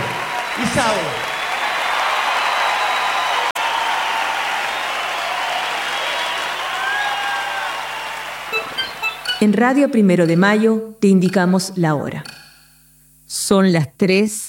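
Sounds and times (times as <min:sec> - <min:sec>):
audience clapping: 0:00.0 - 0:09.4
speech: 0:00.6 - 0:01.3, 0:09.4 - 0:12.4, 0:13.4 - 0:14.4.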